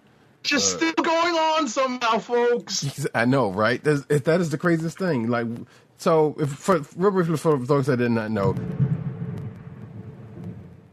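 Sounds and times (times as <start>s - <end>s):
speech: 0.4s - 8.8s
faint crackles: 8.4s - 10.9s
rolling thunder from a thunderstorm: 8.4s - 10.9s.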